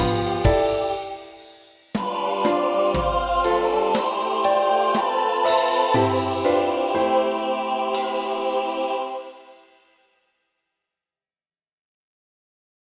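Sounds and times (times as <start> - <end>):
percussion: 0.0 - 10.0.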